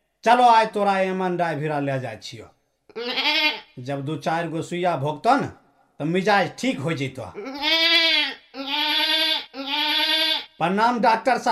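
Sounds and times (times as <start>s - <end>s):
speech: 0.2s - 7.8s, 10.6s - 11.5s
sick goat bleating at a vet's: 2.9s - 3.8s, 7.4s - 10.6s.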